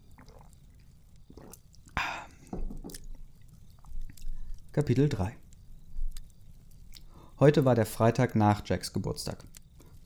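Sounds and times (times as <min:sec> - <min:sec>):
person taking a quick sip of a drink: 0:00.0 - 0:04.8, 0:06.1 - 0:07.4
speech: 0:04.8 - 0:05.4, 0:07.4 - 0:09.6.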